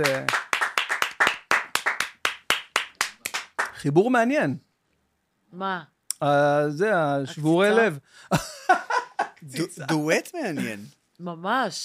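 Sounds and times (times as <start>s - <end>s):
speech: 0.0s - 0.4s, 3.8s - 4.7s, 5.5s - 8.8s, 9.4s - 11.8s
audience applause: 0.0s - 3.7s
laughter: 7.3s - 10.8s.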